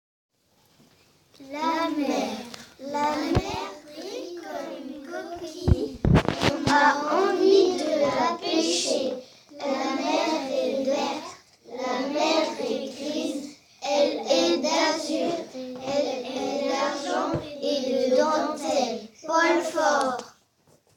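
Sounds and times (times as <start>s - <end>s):
vocals: 1.6s - 20.3s.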